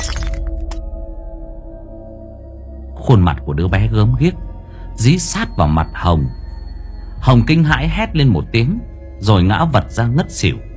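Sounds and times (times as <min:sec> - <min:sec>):
mirror shattering from a child's face striking it: 0:00.0 - 0:00.7
speech: 0:03.1 - 0:06.4, 0:07.2 - 0:10.7.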